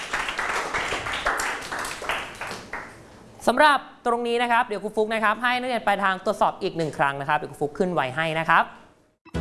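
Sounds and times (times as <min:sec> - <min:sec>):
classroom students applauding: 0:00.0 - 0:03.0
speech: 0:03.4 - 0:08.8.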